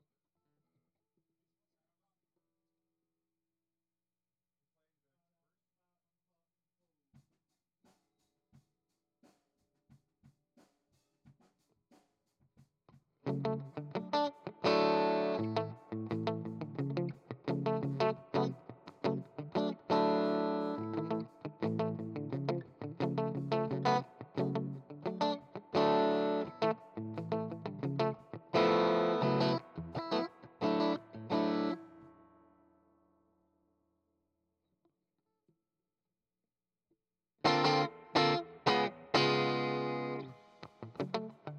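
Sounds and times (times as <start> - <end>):
guitar: 13.2 - 32.5, 37.4 - 41.5.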